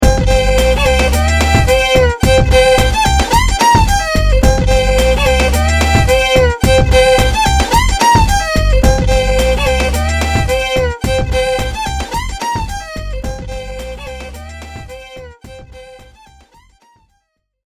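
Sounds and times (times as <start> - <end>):
country music: 0.0 - 16.0.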